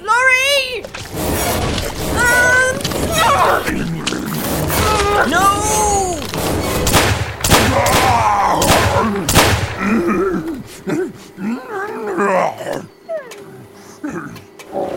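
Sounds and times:
strained voices talking and shouting in an audio drama: 0:00.0 - 0:14.6
gunshots in an audio drama: 0:00.9 - 0:10.3.

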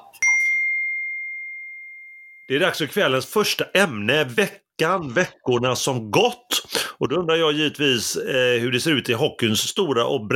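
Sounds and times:
glasses clinking in a toast: 0:00.1 - 0:02.6
speech: 0:02.5 - 0:10.3.

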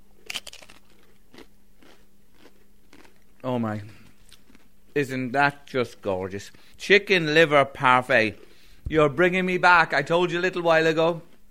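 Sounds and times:
person biting into and chewing crisp food: 0:00.0 - 0:05.0
speech: 0:03.5 - 0:04.0, 0:05.0 - 0:11.3.

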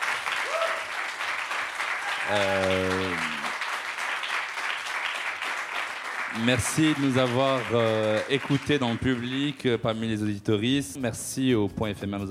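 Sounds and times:
audience applause: 0:00.0 - 0:09.8
speech: 0:02.3 - 0:03.4, 0:06.3 - 0:12.2.

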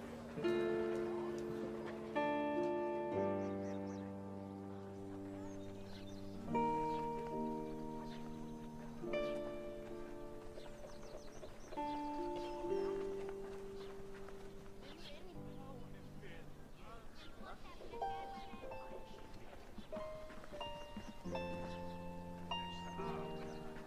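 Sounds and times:
light clopping of a passing horse cart: 0:00.0 - 0:03.1, 0:04.8 - 0:23.8
music of held ringing chords in a medieval town: 0:00.0 - 0:23.8
soft murmur of chatter: 0:00.0 - 0:23.8.

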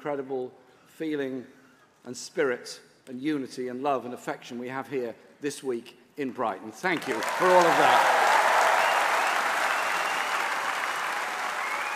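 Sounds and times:
speech: 0:00.0 - 0:08.2
thunderous conference applause: 0:07.1 - 0:11.9.

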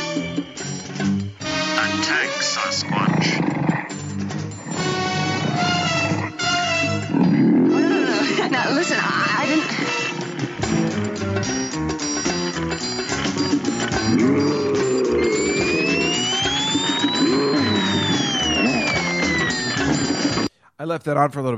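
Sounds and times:
busy music: 0:00.0 - 0:20.5
laughter: 0:07.8 - 0:10.3
slide whistle sound effect: 0:14.0 - 0:20.5
speech: 0:20.8 - 0:21.5.

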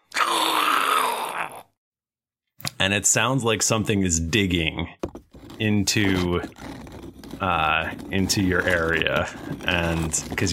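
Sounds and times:
monstrous howl: 0:00.0 - 0:01.7
speech: 0:02.8 - 0:10.5.

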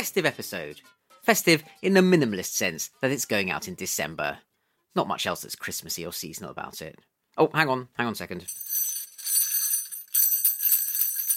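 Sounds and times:
speech: 0:00.0 - 0:08.8
sleigh bells: 0:08.5 - 0:11.3.

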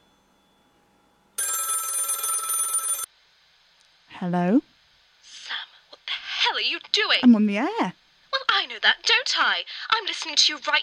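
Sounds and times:
telephone bell ringing in a studio: 0:01.4 - 0:03.1
speech: 0:04.2 - 0:04.6, 0:06.6 - 0:08.0, 0:08.6 - 0:10.8.

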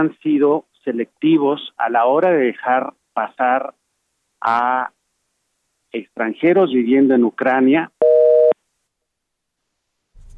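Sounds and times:
speech: 0:00.0 - 0:03.8, 0:04.4 - 0:05.0, 0:05.9 - 0:08.0
faint low noise: 0:00.0 - 0:10.3
telephone busy-signal tone after a dropped call: 0:08.0 - 0:08.6.

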